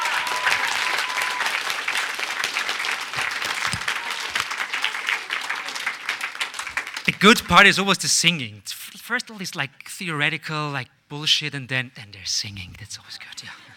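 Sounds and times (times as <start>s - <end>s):
crowd applauding: 0.0s - 7.9s
speech: 7.2s - 13.7s.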